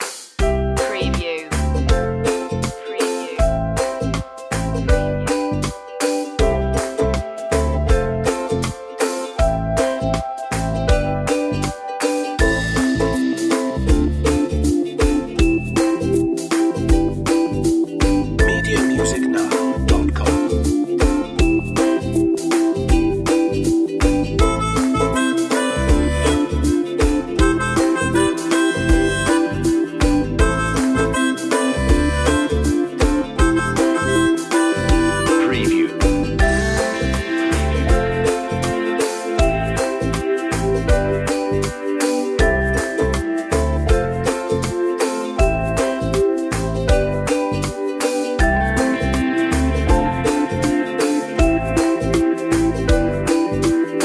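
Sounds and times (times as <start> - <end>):
ukulele: 0.0 - 54.0.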